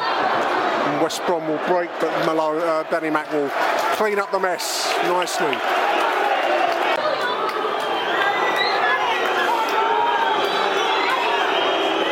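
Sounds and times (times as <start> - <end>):
steady loud roar of stadium noise: 0.0 - 12.0
speech: 1.0 - 6.4
football crowd whistling: 5.1 - 12.0.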